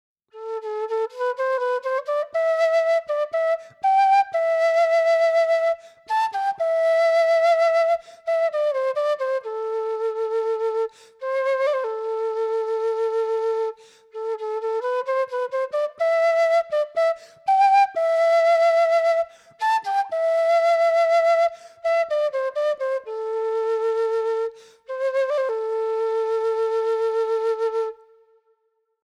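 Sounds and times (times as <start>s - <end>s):
rosewood quena flute: 0.3s - 28.5s.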